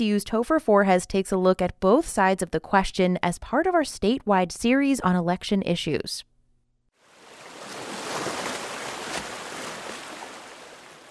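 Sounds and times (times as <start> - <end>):
speech: 0.0 - 6.3
coffee-colored water gurgling near the Franklin Dam: 7.0 - 11.0.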